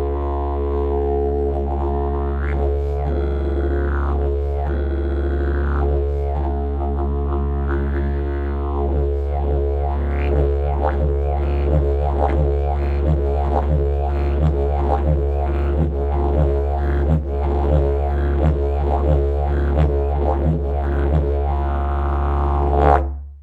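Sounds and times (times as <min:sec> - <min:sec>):
didgeridoo: 0:00.0 - 0:23.4.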